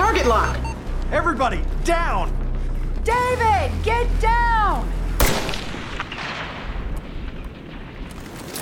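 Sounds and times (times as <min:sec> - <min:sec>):
speech: 0:00.2 - 0:02.4, 0:03.1 - 0:05.0
sniper rifle gunfire from a tower: 0:05.2 - 0:06.9.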